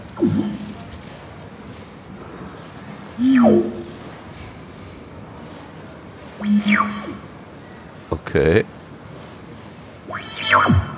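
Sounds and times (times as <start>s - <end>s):
speech: 0.2s - 0.6s, 3.2s - 3.7s, 8.4s - 8.8s
electronic sonification of flickering light: 6.4s - 7.2s, 10.1s - 10.9s.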